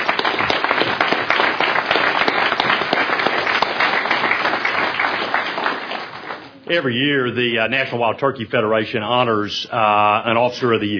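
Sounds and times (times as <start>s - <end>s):
audience applause: 0.0s - 6.6s
speech: 6.7s - 10.9s.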